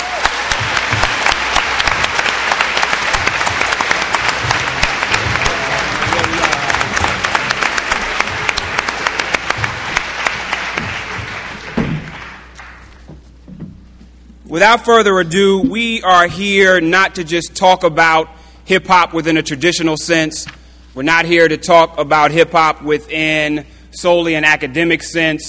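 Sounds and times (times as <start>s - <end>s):
audience applause: 0.0s - 13.0s
speech: 14.6s - 25.4s.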